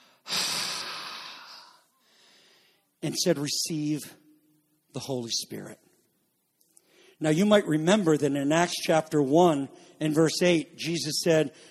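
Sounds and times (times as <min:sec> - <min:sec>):
preacher breathing out to imitate breathing on someone: 0:00.0 - 0:02.8
speech: 0:03.0 - 0:04.2, 0:05.0 - 0:05.8, 0:07.2 - 0:11.6.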